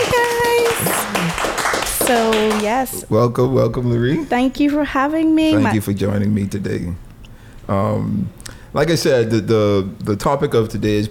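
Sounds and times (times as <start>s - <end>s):
audience clapping: 0.0s - 3.1s
speech: 2.1s - 7.0s, 7.7s - 11.1s.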